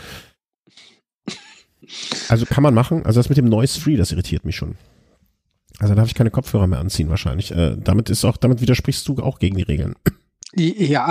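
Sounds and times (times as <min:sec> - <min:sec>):
person coughing: 0:00.8 - 0:02.5
speech: 0:02.3 - 0:05.0, 0:05.8 - 0:11.0.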